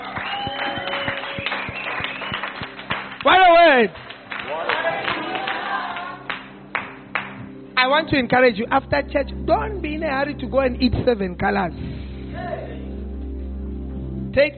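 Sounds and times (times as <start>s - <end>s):
audience clapping hands: 0.0s - 7.6s
speech: 3.8s - 4.0s, 7.9s - 11.9s, 14.4s - 14.5s.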